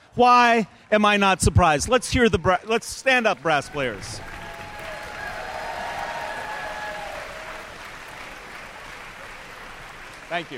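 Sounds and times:
speech: 0.2 - 4.3, 10.3 - 10.5
audience applause: 3.3 - 10.5.

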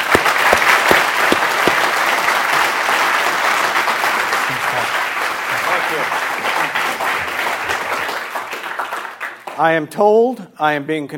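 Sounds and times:
audience applause welcoming a speaker: 0.0 - 9.5
speech: 9.6 - 11.1.

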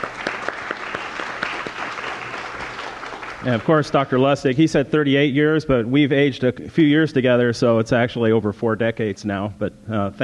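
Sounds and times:
audience applause: 0.0 - 4.2
speech: 3.4 - 10.2.

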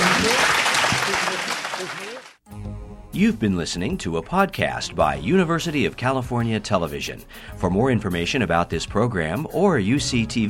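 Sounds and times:
audience applause: 0.0 - 2.4
speech: 3.1 - 10.4.

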